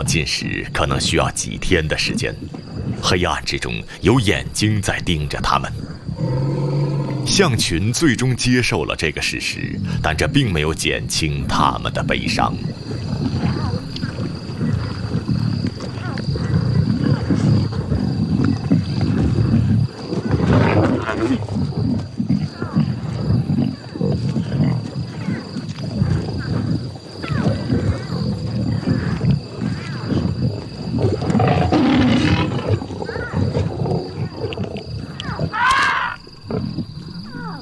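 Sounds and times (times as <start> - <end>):
speech: 0.0 - 6.6, 7.2 - 13.4
higher grunts and calls: 0.0 - 37.5
wind: 0.0 - 37.5
pride of lions roaring at night: 5.2 - 7.9, 11.0 - 25.4, 26.4 - 35.8.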